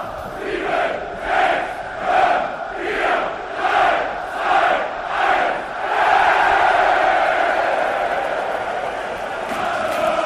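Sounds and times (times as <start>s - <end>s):
football fans chanting hostile shouts: 0.0s - 10.2s.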